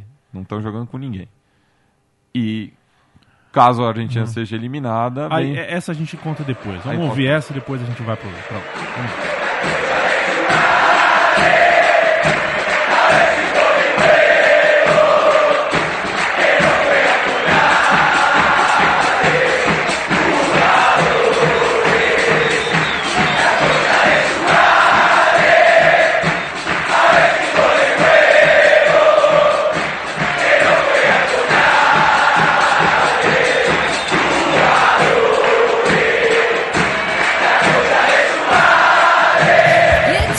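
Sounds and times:
speech: 0.4 - 1.4, 2.3 - 2.8, 3.5 - 9.8
football supporters chanting: 8.6 - 40.2.

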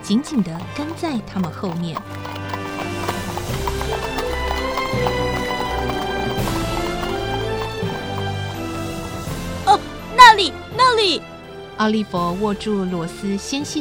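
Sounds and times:
horse hooves of horse-drawn carriages clip-clopping: 0.0 - 9.7
speech: 0.1 - 2.4, 9.7 - 13.8.

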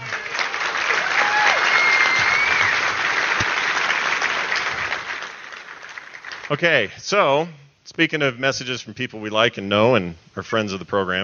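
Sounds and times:
applause: 0.0 - 6.6
speech: 6.5 - 11.2.

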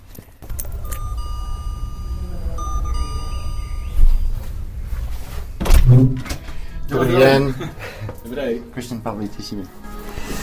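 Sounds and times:
doorbell ringing at a swingers club: 0.5 - 4.2
speech: 7.0 - 9.8.

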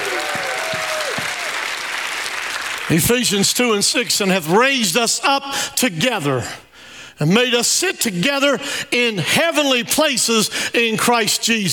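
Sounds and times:
shouts of praise: 0.0 - 1.6
audience applause: 0.0 - 3.0
speech: 2.9 - 6.6, 7.2 - 11.7.

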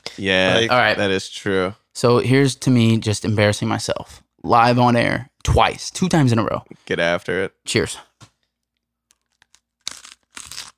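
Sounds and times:
speech: 0.2 - 8.1
crunchy bite of raw onion: 9.1 - 10.7.

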